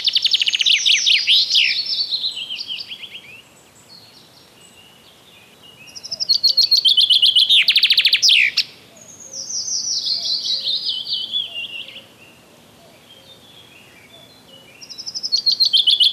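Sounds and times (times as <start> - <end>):
common chaffinch song: 0.0 - 16.1.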